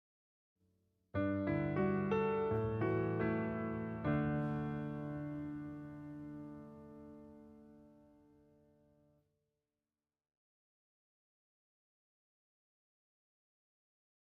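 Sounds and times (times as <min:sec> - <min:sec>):
instrumental music: 0:01.2 - 0:09.1.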